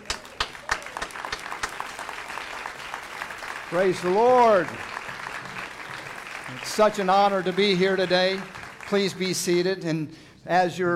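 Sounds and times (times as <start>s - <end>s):
audience applause at a church service welcoming a speaker: 0.0s - 9.6s
speech: 3.7s - 4.9s, 6.5s - 10.9s.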